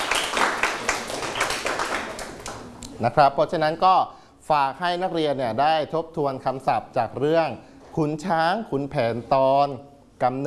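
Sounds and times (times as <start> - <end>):
classmates clapping in a classroom: 0.0 - 3.0
speech: 3.0 - 10.4.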